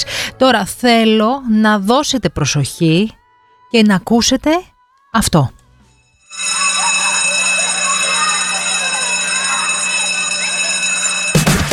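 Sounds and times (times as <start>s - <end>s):
speech: 0.0s - 5.6s
school bell ringing: 6.2s - 11.7s.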